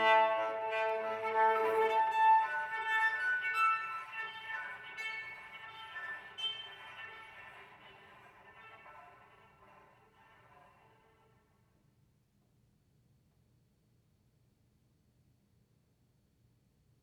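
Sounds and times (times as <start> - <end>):
solo cello playing leggiero and molto espressivo: 0.0 - 11.1.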